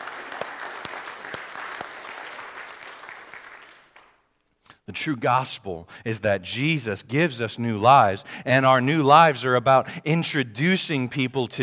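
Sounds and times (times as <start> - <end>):
crowd applause: 0.0 - 4.2
speech: 4.9 - 11.6.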